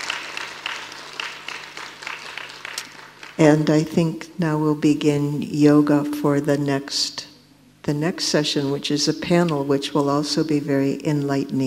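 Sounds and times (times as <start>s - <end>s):
audience applause: 0.0s - 3.4s
speech: 3.4s - 7.3s, 7.9s - 11.6s.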